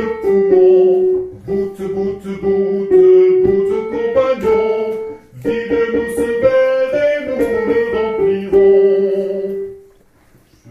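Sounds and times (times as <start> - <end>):
sopranos singing a drinking song: 0.0 - 9.9.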